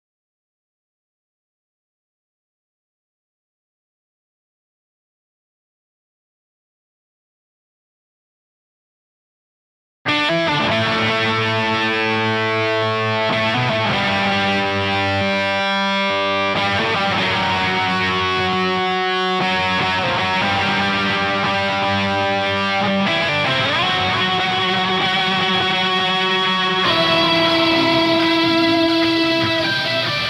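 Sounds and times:
bass guitar: 10.1s - 30.2s.

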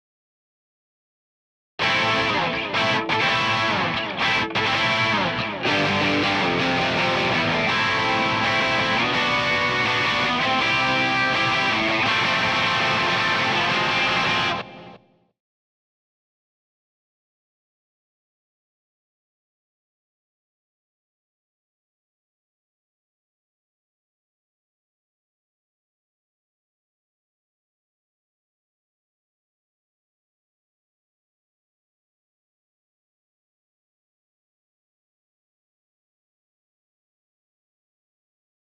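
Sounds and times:
guitar in C: 1.8s - 15.3s.

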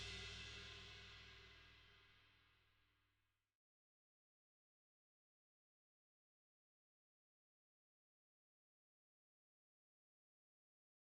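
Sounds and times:
drums: 0.0s - 2.0s.

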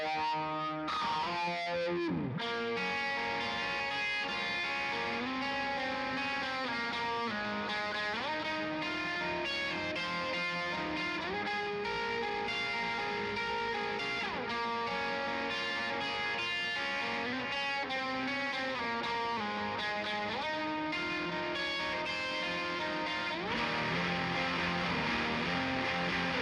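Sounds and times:
guitars: 0.0s - 26.4s.

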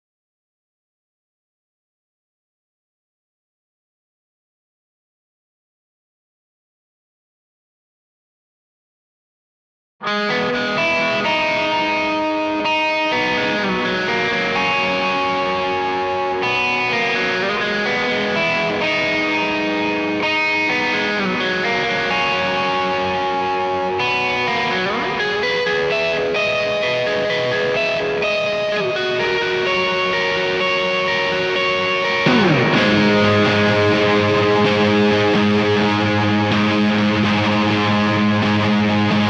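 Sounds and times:
guitar in C: 10.0s - 39.2s.

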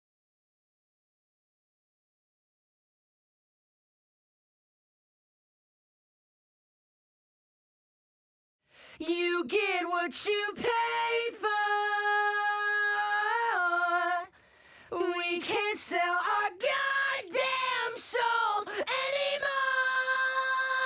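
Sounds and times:
main vocals: 8.9s - 20.8s.

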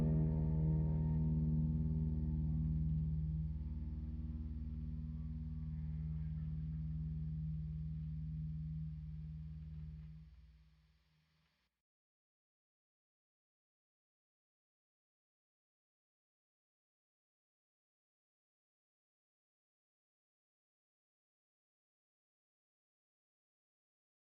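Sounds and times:
guitars: 0.0s - 10.2s.

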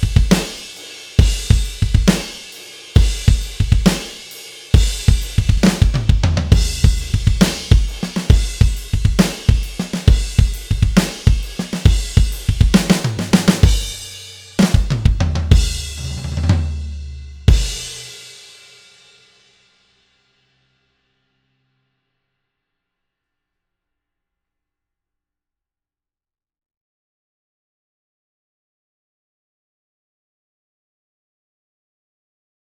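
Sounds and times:
drums: 0.0s - 20.2s.

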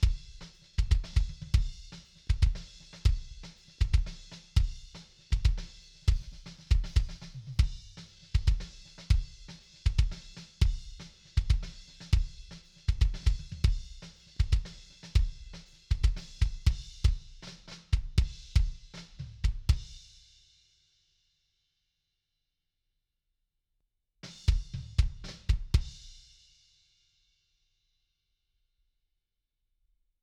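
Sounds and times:
kick drum: 0.0s - 20.0s, 24.5s - 26.2s.

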